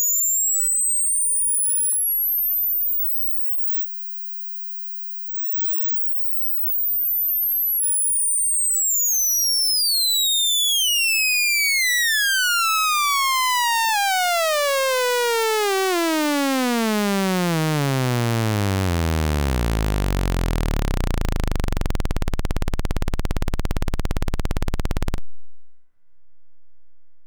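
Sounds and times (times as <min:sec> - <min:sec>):
DVCO synth oscillator sweep ramp: 0:08.0 - 0:25.8.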